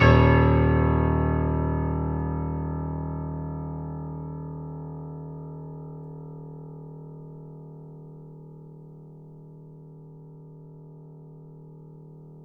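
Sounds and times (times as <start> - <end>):
grand piano note D sharp 0: 0.0 - 6.4.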